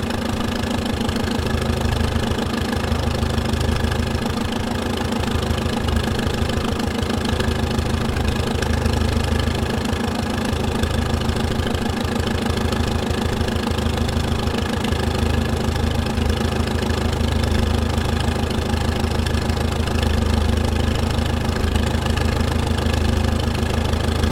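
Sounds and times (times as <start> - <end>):
1937 McCormick Deering W12 old farm tractor idling: 0.0 - 24.3.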